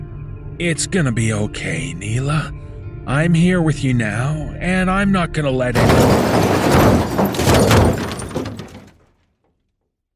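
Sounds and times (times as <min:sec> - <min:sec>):
speech: 0:00.6 - 0:07.9
crunching twisting metal: 0:05.8 - 0:09.0
debris crackling: 0:05.8 - 0:09.0
glass shattering: 0:05.8 - 0:09.0
loud car crash with heavy impact: 0:05.8 - 0:09.0.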